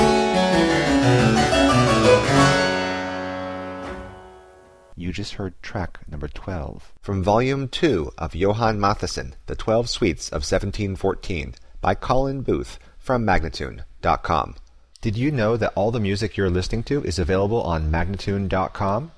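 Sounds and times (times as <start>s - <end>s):
courante from a suite in G minor: 0.0s - 4.3s
person speaking: 5.0s - 19.1s.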